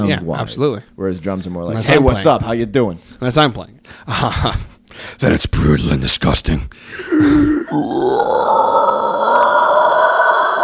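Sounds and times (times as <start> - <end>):
speech: 0.0 - 8.7
voice imitating a pig squeal: 7.1 - 10.6.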